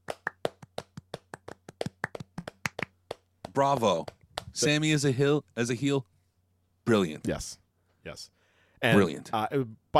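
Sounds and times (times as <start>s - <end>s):
hand claps: 0.0s - 4.7s
speech: 3.6s - 6.1s, 6.9s - 9.9s.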